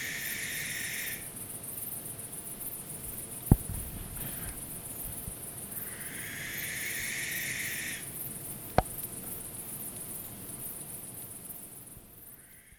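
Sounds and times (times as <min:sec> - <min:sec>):
barn owl hissing screech: 0:00.0 - 0:01.2, 0:05.9 - 0:08.0
insects trilling: 0:00.0 - 0:12.7.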